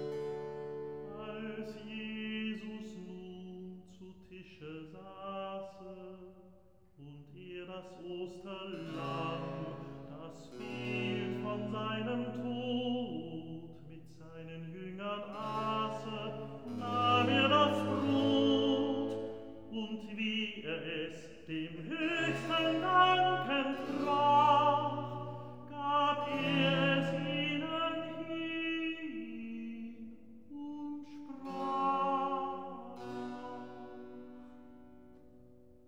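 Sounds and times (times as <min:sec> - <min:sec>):
recitative singing: 0:00.2 - 0:06.4, 0:07.0 - 0:34.7.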